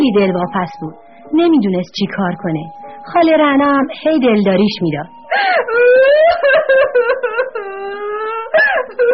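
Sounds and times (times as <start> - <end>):
speech: 0.1 - 9.1
woman crying and sobbing in distress: 2.7 - 9.1.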